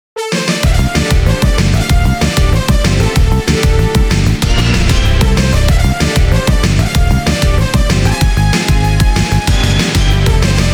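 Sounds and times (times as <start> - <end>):
stage intro music: 0.3 - 10.7.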